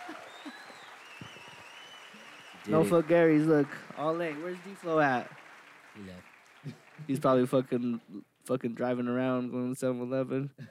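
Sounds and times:
audience clapping: 0:00.0 - 0:08.0
speech: 0:02.6 - 0:05.4, 0:06.0 - 0:10.6.

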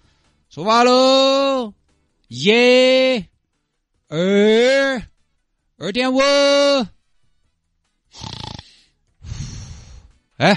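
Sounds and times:
speech: 0:00.5 - 0:03.3, 0:04.1 - 0:05.1, 0:05.8 - 0:06.9, 0:10.4 - 0:10.5
snoring: 0:08.1 - 0:10.1.

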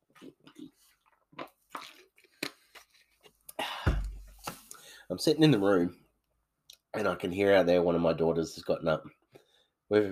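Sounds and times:
person taking a swig of water: 0:00.1 - 0:04.8
speech: 0:05.1 - 0:06.0, 0:07.0 - 0:09.2, 0:09.9 - 0:10.1.

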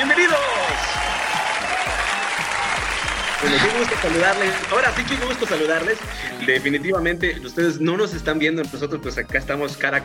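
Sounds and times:
audience applause: 0:00.0 - 0:06.3
speech: 0:03.5 - 0:10.0.

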